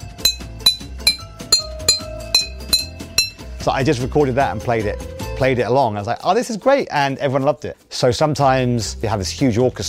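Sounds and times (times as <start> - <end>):
water bottle struck as percussion with a stick: 0.0 - 3.5
speech: 3.6 - 9.8.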